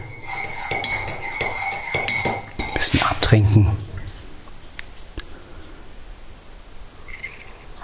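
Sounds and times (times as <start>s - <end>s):
ordinary cup clinking: 0.0s - 3.2s
speech: 3.3s - 3.9s.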